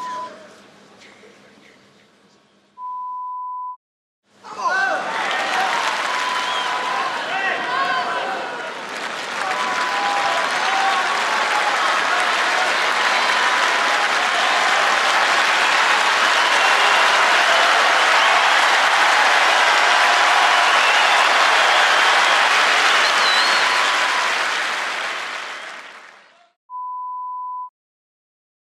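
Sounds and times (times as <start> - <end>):
crowd sounds at Wimbledon: 4.8 - 26.5.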